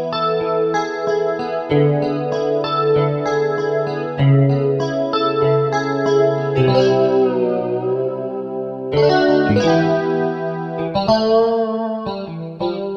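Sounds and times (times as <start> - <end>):
JC guitar patch on Roland SC-880 sound module: 0.0 - 12.9.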